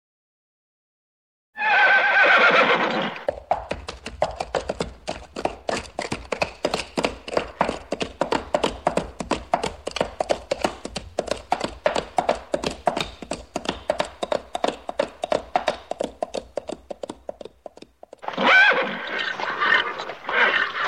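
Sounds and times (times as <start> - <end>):
horse hoofbeats in a fast steady clip-clop: 1.6 - 20.8.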